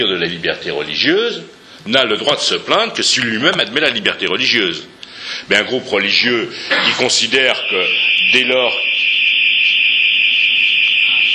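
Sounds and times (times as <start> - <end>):
speech: 0.0 - 8.9
high-pitched electronic alarm tone: 7.5 - 11.3.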